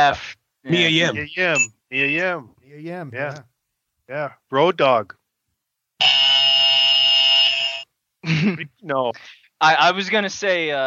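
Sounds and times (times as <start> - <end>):
speech: 0.0 - 3.5, 4.1 - 5.2, 8.2 - 10.8
wrong-answer buzzer: 6.0 - 7.9.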